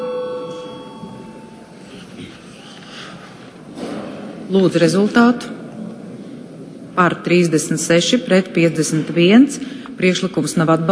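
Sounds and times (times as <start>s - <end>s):
parliament voting bell ringing: 0.0s - 1.8s
speech: 4.5s - 5.6s, 7.0s - 10.8s.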